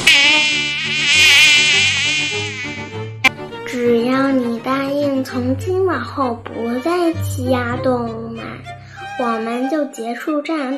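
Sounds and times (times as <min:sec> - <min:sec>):
mosquito buzzing: 0:00.0 - 0:03.3
low musical tones: 0:00.0 - 0:09.2
speech: 0:05.3 - 0:10.7.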